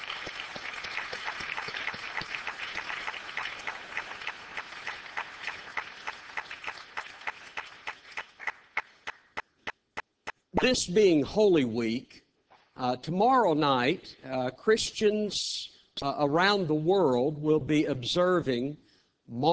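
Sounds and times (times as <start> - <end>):
applause: 0.0 - 10.4
speech: 10.6 - 12.2, 12.8 - 19.5.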